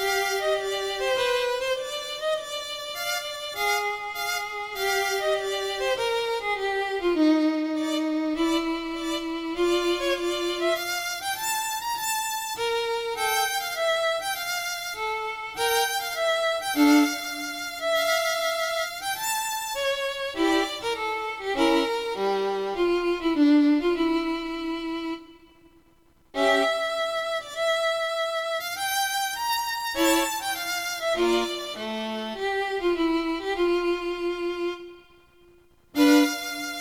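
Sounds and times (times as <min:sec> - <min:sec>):
solo violin playing a classical-style sonata: 0:00.0 - 0:36.7.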